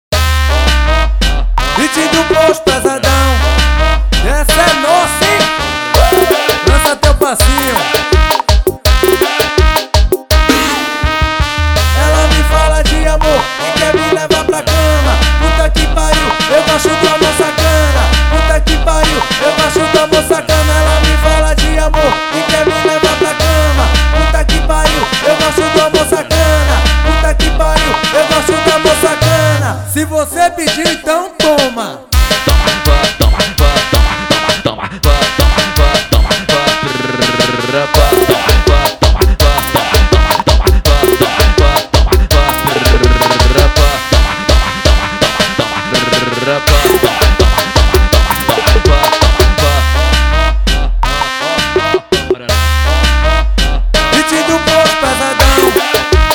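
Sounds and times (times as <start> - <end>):
arrocha music: 0.1 - 56.3.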